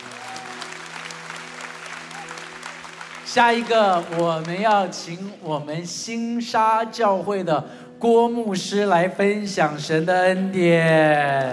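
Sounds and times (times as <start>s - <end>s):
applause: 0.0s - 5.6s
speech: 3.3s - 11.5s.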